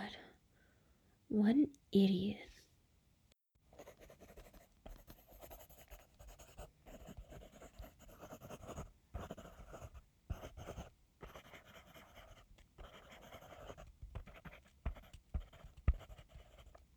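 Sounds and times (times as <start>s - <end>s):
speech: 1.3s - 2.5s
pen scratching on paper writing a letter: 3.7s - 16.9s.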